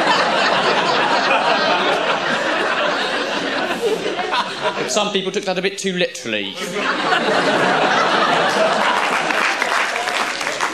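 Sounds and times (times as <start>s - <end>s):
laughter: 0.0s - 4.9s, 6.6s - 10.2s
speech: 5.0s - 9.2s
crowd clapping at a live show: 7.8s - 10.7s.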